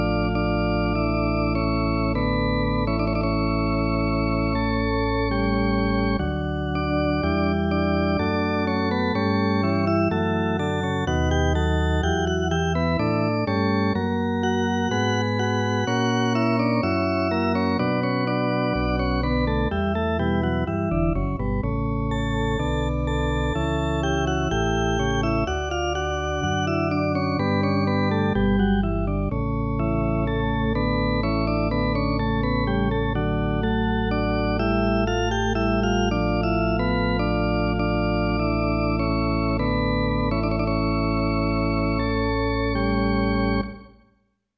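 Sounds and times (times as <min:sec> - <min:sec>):
drawbar organ: 0:00.0 - 0:44.0.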